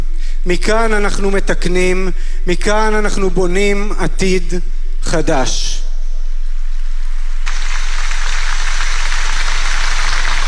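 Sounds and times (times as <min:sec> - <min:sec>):
speech: 0:00.4 - 0:05.8
crowd applause: 0:07.5 - 0:10.4.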